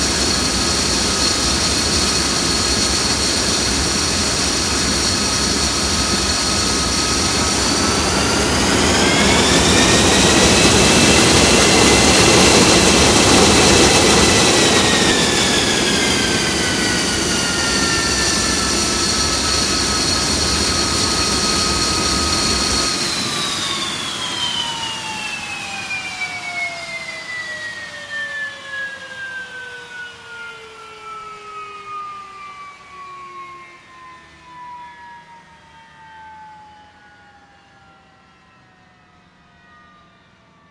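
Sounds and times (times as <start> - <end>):
jet fighter engine starting: 0.0 - 36.7.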